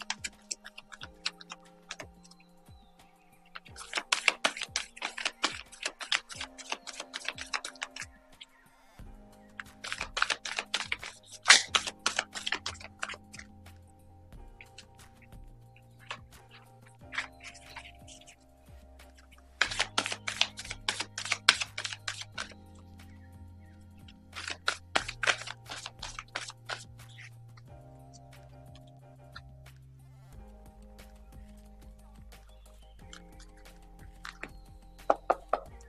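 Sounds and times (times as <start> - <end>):
tarot cards being shuffled for a card reading: 0.0 - 2.4, 3.4 - 8.2, 9.5 - 13.9, 14.6 - 18.3, 19.0 - 23.3, 24.1 - 27.6.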